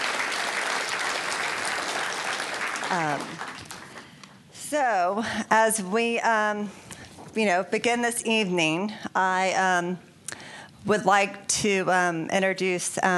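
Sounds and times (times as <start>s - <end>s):
audience applause: 0.0s - 4.1s
speech: 2.9s - 3.7s, 4.7s - 6.8s, 7.4s - 10.1s, 10.8s - 13.1s.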